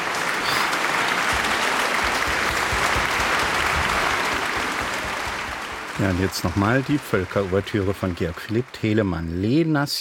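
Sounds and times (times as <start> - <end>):
applause: 0.0 - 10.0
speech: 6.0 - 10.0.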